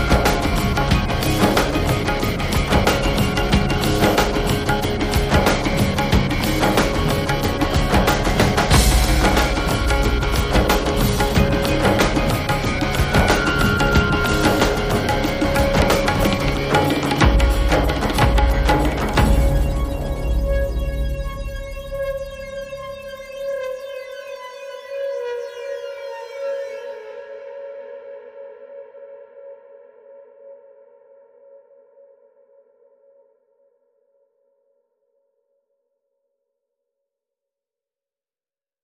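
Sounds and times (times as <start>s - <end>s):
masala music without pads: 0.0s - 24.5s.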